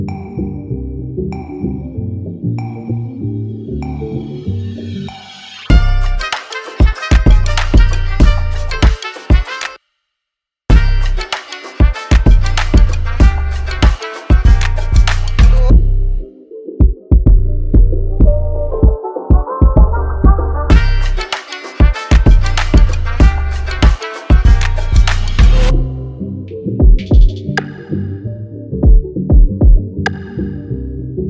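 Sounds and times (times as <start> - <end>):
instrumental music: 5.7 - 9.8, 10.7 - 30.5.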